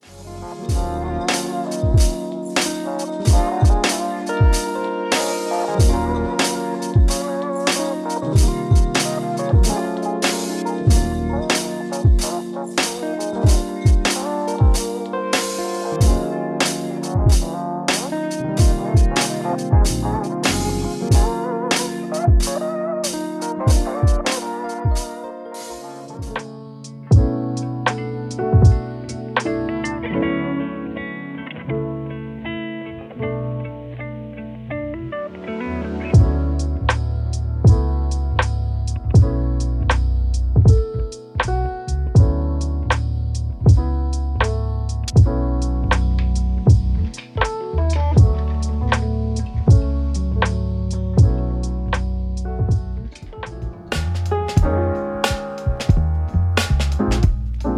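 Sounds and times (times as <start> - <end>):
instrumental beat: 0.0 - 30.3, 35.0 - 57.7.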